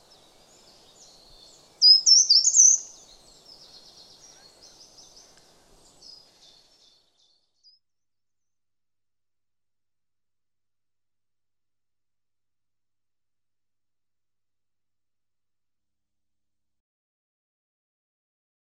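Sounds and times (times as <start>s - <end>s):
Eurasian nuthatch bird calls: 0.1s - 7.4s.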